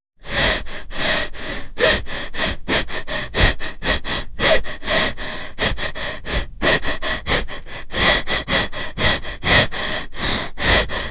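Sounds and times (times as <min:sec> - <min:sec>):
anxious person breathing heavily: 0:00.2 - 0:11.0.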